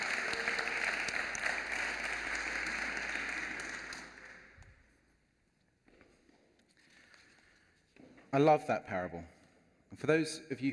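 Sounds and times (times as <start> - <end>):
audience applause: 0.0 - 4.6
speech: 8.4 - 9.4, 10.0 - 10.7.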